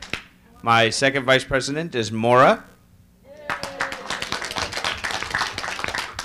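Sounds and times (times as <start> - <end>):
speech: 0.6 - 2.7
audience applause: 3.4 - 6.2.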